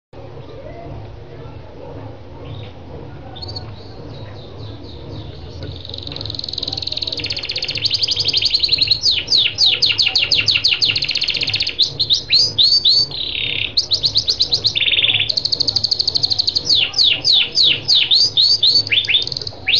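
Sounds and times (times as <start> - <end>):
Lancashire canary song: 2.1 - 19.7.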